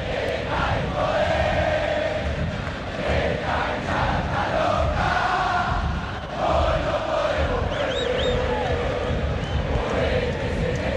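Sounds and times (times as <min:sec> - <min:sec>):
large football stadium crowd chanting in unison: 0:00.0 - 0:10.9
high whistles: 0:07.7 - 0:08.4.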